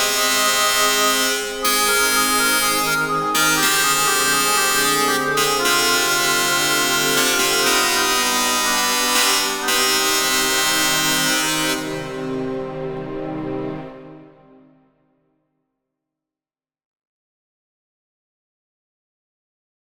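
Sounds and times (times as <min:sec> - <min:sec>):
serenade for orchestra and harpsichord: 0:00.0 - 0:14.1.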